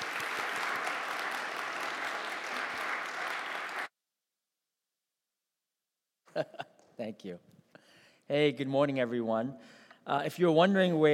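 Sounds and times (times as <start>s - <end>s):
audience applause: 0.0s - 3.9s
speech: 6.4s - 7.5s, 8.3s - 11.1s.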